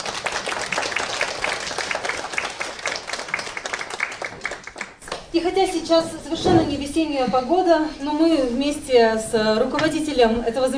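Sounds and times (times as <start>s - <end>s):
audience applause: 0.0s - 5.3s
speech: 5.4s - 10.7s.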